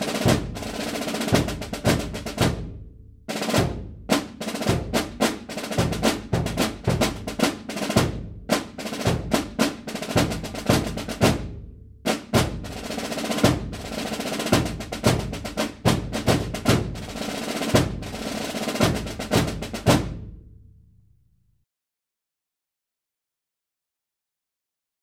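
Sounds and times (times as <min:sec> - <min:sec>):
military drum cadence: 0:00.0 - 0:20.6.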